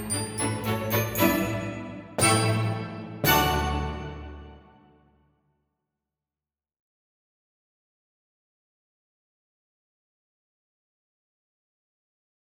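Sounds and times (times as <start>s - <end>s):
glockenspiel: 0.0s - 4.7s.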